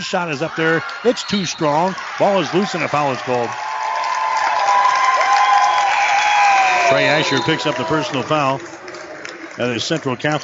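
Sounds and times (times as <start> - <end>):
speech: 0.0 - 3.7, 6.9 - 8.9, 9.6 - 10.4
crowd applauding at a basketball game: 0.0 - 10.4
whistles: 0.7 - 2.0, 5.4 - 7.9.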